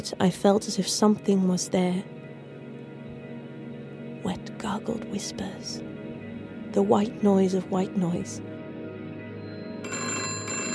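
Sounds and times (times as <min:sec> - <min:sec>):
speech: 0:00.0 - 0:02.2, 0:04.2 - 0:06.0, 0:06.7 - 0:08.6
telephone bell ringing with a buzzing metallic trill: 0:09.7 - 0:10.7.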